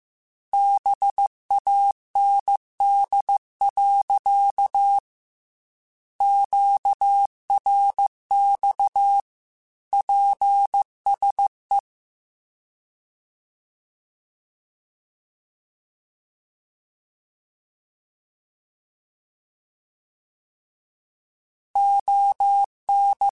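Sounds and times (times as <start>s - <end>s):
Morse code radio QSOs: 0.6s - 5.0s, 6.2s - 9.2s, 10.0s - 11.8s, 21.8s - 23.3s.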